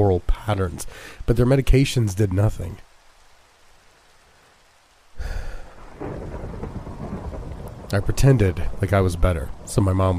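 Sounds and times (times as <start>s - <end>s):
heavy rain pattering: 0.0s - 10.1s
speech: 0.1s - 2.9s, 7.9s - 10.1s
thunderclap rolling into a deep rumble: 5.2s - 10.1s.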